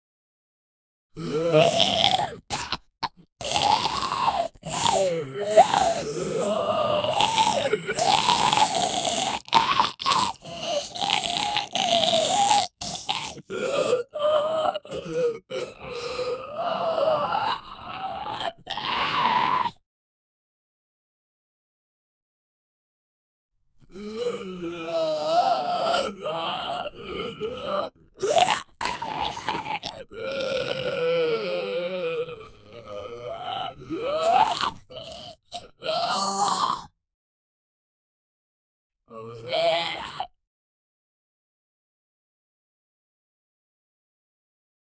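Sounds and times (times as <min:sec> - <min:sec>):
zombie choking on air: 0:01.2 - 0:19.7, 0:24.2 - 0:36.8.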